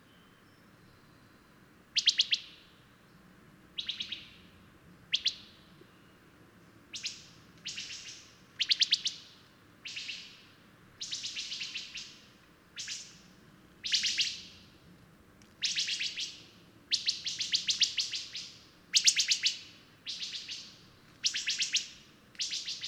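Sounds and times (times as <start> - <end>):
bird song: 0.0 - 3.2, 3.8 - 13.2, 13.8 - 14.7, 15.6 - 22.8.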